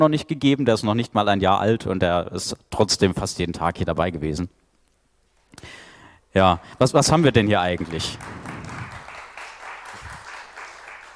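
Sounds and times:
speech: 0:00.0 - 0:04.6, 0:05.6 - 0:08.5
crowd applause: 0:07.2 - 0:11.1.

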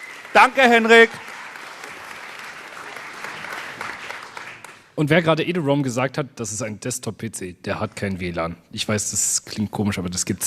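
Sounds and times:
audience applauding: 0:00.0 - 0:04.9
speech: 0:00.3 - 0:01.3, 0:05.0 - 0:10.4.

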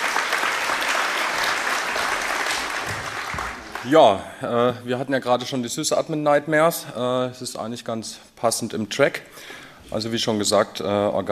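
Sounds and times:
audience applause: 0:00.0 - 0:04.2
speech: 0:03.8 - 0:11.3.

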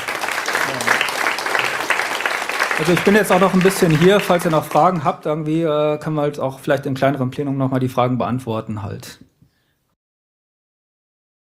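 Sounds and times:
audience applause after a talk: 0:00.0 - 0:05.2
speech: 0:02.8 - 0:09.3.

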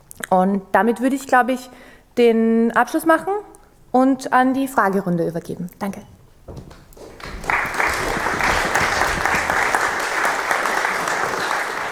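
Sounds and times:
speech: 0:00.3 - 0:06.2
audience applause: 0:07.0 - 0:11.8.

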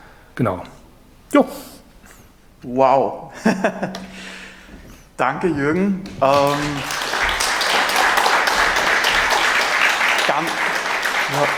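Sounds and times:
speech: 0:00.4 - 0:01.8, 0:02.6 - 0:04.4, 0:05.2 - 0:07.0, 0:10.4 - 0:10.6, 0:11.3 - 0:11.5
audience applause: 0:06.1 - 0:11.5.

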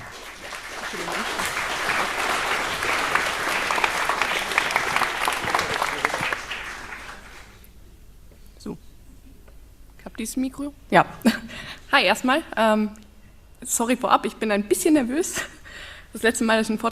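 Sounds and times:
audience applause for a speaker at a talk: 0:00.0 - 0:07.6
speech: 0:10.2 - 0:13.0, 0:13.6 - 0:15.5, 0:16.1 - 0:16.9.

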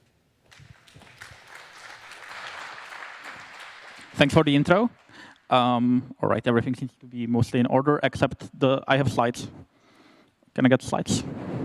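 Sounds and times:
audience applause: 0:00.5 - 0:05.6
speech: 0:04.2 - 0:09.7, 0:10.6 - 0:11.5.

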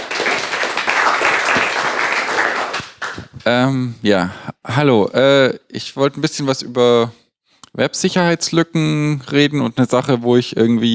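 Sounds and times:
short audience applause: 0:00.0 - 0:03.4
speech: 0:03.4 - 0:07.2, 0:07.8 - 0:10.9.

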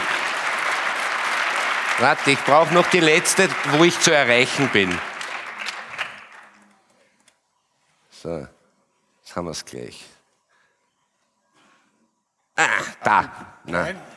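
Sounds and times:
audience applause: 0:00.0 - 0:06.7
speech: 0:02.0 - 0:05.1, 0:08.2 - 0:08.6, 0:09.3 - 0:10.2, 0:12.6 - 0:14.1.

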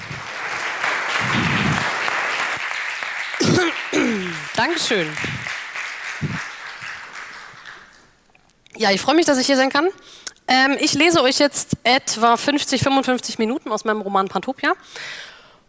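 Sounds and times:
audience applause: 0:00.0 - 0:08.2
speech: 0:04.6 - 0:05.4, 0:08.8 - 0:15.6.

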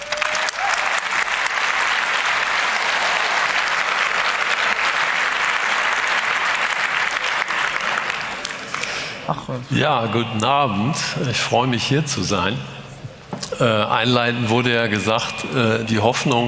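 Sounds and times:
loud audience applause: 0:00.0 - 0:09.3
speech: 0:09.4 - 0:12.8, 0:13.6 - 0:16.4.

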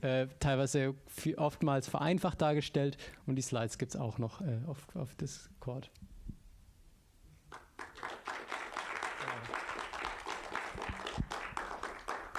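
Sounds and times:
speech: 0:00.0 - 0:06.1
audience applause: 0:07.5 - 0:12.3.

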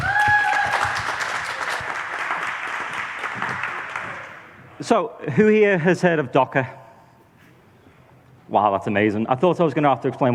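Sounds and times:
audience applause: 0:00.0 - 0:04.6
speech: 0:04.8 - 0:06.8, 0:08.5 - 0:10.3.

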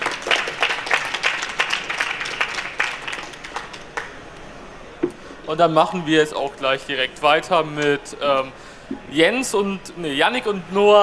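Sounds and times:
audience applause: 0:00.0 - 0:04.2
speech: 0:05.5 - 0:11.0.

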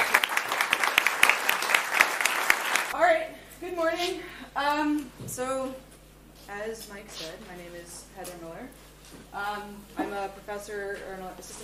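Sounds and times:
audience applauding a speaker at a university computer science talk: 0:00.0 - 0:03.0
speech: 0:03.7 - 0:05.9, 0:06.5 - 0:11.6.

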